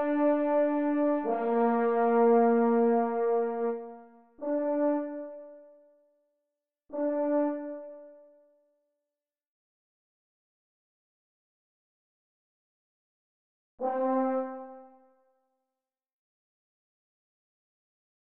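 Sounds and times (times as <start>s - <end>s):
F horn: 0.0s - 5.7s, 6.9s - 8.2s, 13.8s - 15.1s.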